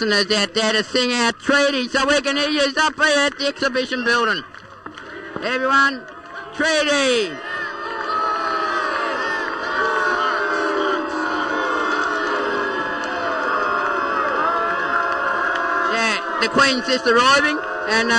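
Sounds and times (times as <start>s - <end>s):
speech: 0.0s - 4.5s, 5.4s - 7.5s, 16.4s - 18.1s
crowd booing: 4.9s - 18.1s.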